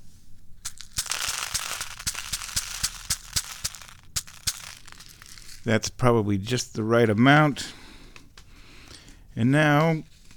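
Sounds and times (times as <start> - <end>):
wheat kitty litter poured onto a sheet of paper: 0.7 - 5.7
speech: 5.6 - 7.8, 9.4 - 10.1.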